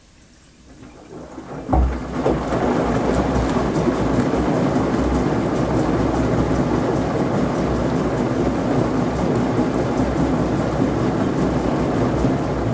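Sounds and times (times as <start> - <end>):
washing machine with laundry spinning: 0.0 - 12.7
churning, gurgling wash: 0.2 - 12.7
thump: 1.7 - 2.4.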